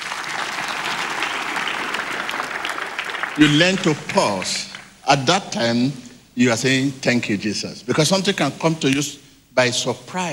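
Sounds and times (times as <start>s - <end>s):
audience applause: 0.0s - 5.0s
speech: 3.4s - 10.3s.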